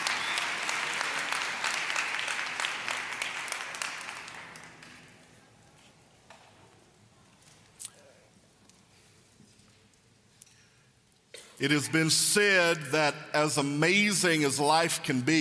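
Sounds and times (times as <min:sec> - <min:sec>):
audience clapping hands: 0:00.0 - 0:05.4
speech: 0:11.6 - 0:15.3.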